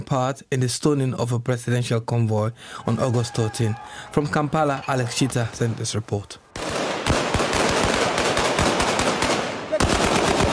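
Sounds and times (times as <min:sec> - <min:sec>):
speech: 0:00.1 - 0:06.5
live gunfire as police and army quash a riot in Kampala: 0:06.5 - 0:10.5.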